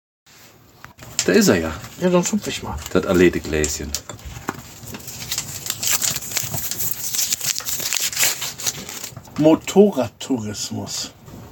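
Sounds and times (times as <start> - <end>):
paper note rustling as it is pulled out: 0.8 - 9.6
speech: 1.3 - 4.2, 9.4 - 11.5.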